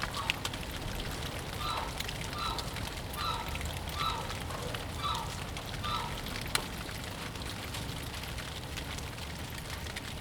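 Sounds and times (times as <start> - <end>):
cold January rain falling in a backyard: 0.0 - 10.2.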